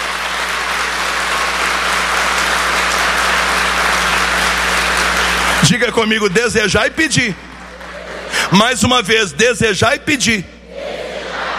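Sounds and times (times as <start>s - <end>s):
large audience applause: 0.0s - 8.8s
speech: 5.6s - 7.5s, 8.5s - 10.5s.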